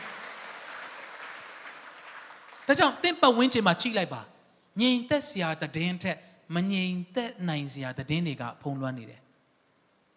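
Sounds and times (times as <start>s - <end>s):
church congregation clapping their hands: 0.0s - 3.1s
speech: 2.7s - 9.2s.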